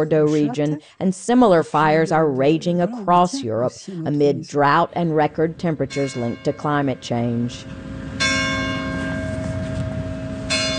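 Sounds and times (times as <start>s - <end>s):
speech: 0.0s - 7.9s
church bells ringing in Saint-Jean-d'Illac: 5.8s - 7.3s, 7.9s - 10.7s.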